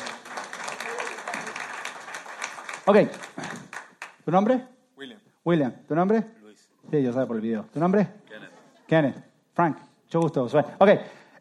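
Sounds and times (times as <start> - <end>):
audience applause: 0.0 - 4.2
speech: 2.9 - 3.5, 4.2 - 4.7, 5.4 - 8.2, 8.9 - 11.3.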